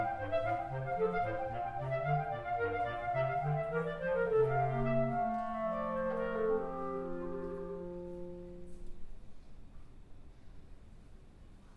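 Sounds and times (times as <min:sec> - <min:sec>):
baroque dance piece: 0:00.0 - 0:09.3.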